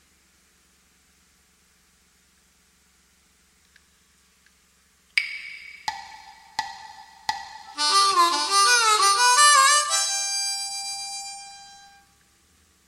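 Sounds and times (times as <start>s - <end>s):
gaita blues lick: 7.3s - 12.1s.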